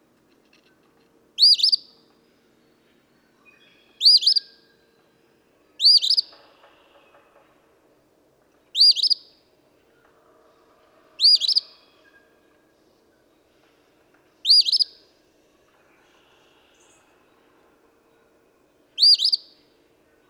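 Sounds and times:
Eastern phoebe calling fee-bee: 0:01.4 - 0:01.9, 0:04.0 - 0:04.5, 0:05.8 - 0:06.3, 0:08.8 - 0:09.3, 0:11.2 - 0:11.8, 0:14.4 - 0:14.9, 0:19.0 - 0:19.5.

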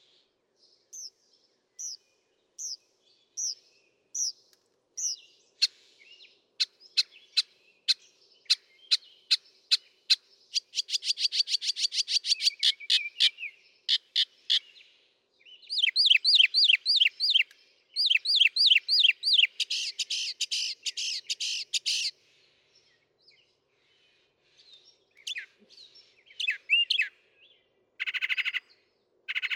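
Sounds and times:
northern mockingbird singing: 0:00.9 - 0:01.1, 0:01.8 - 0:02.0, 0:03.4 - 0:03.6, 0:04.2 - 0:04.4, 0:05.0 - 0:14.8, 0:15.6 - 0:22.1, 0:25.2 - 0:29.5.

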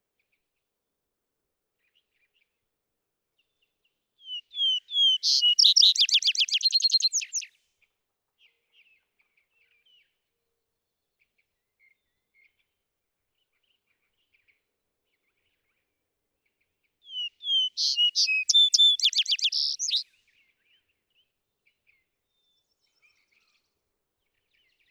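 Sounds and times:
vesper sparrow song: 0:04.2 - 0:07.5, 0:17.1 - 0:20.0.

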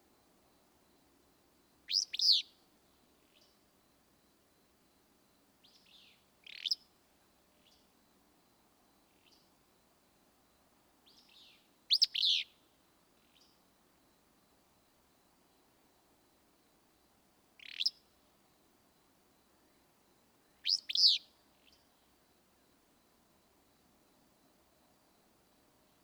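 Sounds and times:
Willow Flycatcher calling: 0:01.9 - 0:02.6, 0:05.6 - 0:06.8, 0:11.1 - 0:12.5, 0:17.6 - 0:18.0, 0:20.6 - 0:21.8.

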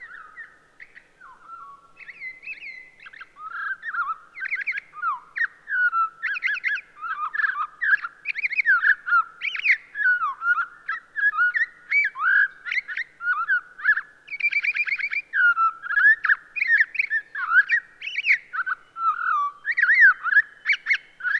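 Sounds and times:
Townsend's solitaire singing a long continuous fluty warble: 0:00.0 - 0:21.3.

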